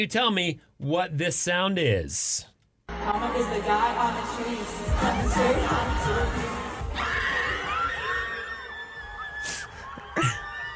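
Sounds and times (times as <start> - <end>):
speech: 0.0 - 2.5, 3.1 - 7.1
concert crowd in Argentina screaming and cheering: 4.9 - 10.7.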